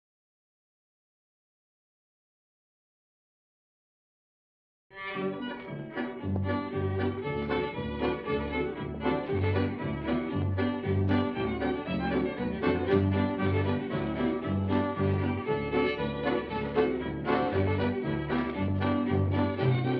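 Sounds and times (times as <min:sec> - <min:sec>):
instrumental music: 0:04.9 - 0:19.9.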